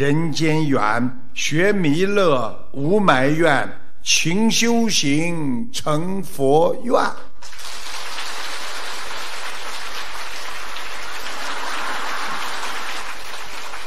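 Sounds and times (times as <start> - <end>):
speech: 0.0 - 7.3
audience applause: 7.4 - 13.8.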